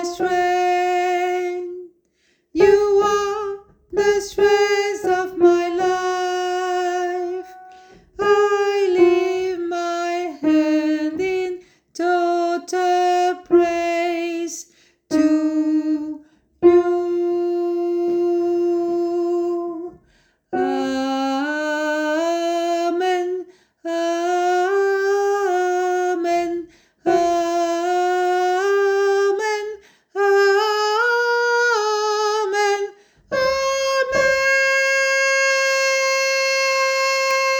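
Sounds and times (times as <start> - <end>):
soprano voice singing: 0.0 - 1.9, 2.6 - 20.0, 20.6 - 37.5.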